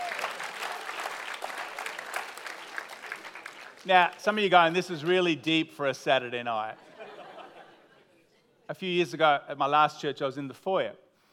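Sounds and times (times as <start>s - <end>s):
audience applause: 0.0s - 4.8s
speech: 3.8s - 6.9s, 8.7s - 11.0s
laughter: 6.7s - 8.4s.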